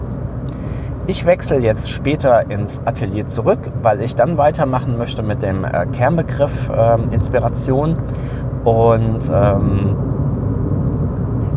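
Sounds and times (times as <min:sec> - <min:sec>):
car being driven, low rumble: 0:00.0 - 0:11.5
speech: 0:01.1 - 0:10.1.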